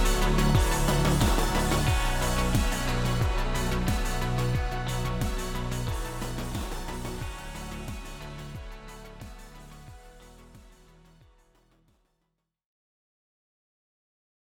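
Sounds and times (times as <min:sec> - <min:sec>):
instrumental remix: 0:00.0 - 0:10.8.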